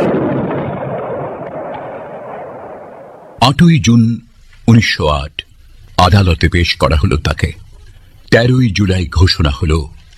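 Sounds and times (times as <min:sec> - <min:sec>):
battlefield explosion: 0:00.0 - 0:03.7
speech: 0:03.4 - 0:07.6, 0:08.3 - 0:10.0.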